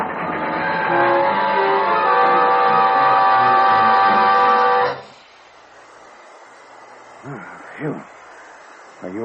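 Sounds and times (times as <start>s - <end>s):
train braking hard and derailing: 0.0s - 5.3s.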